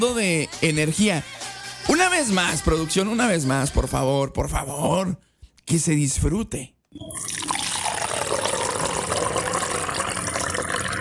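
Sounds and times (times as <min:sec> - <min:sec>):
speech: 0:00.0 - 0:07.3
coffee pouring in a steady liquid stream: 0:07.0 - 0:10.9.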